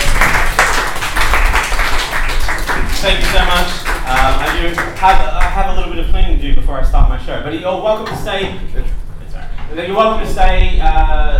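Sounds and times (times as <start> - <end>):
audience applause for the guests at a live show: 0.0 - 5.5
speech: 3.0 - 9.0, 9.7 - 11.3.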